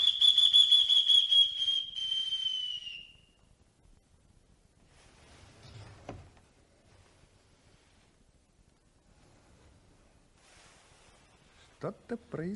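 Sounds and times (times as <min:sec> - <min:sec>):
person whistling outside on the street: 0:00.0 - 0:03.3
quiet rustling: 0:04.7 - 0:12.5
speech: 0:11.8 - 0:12.5.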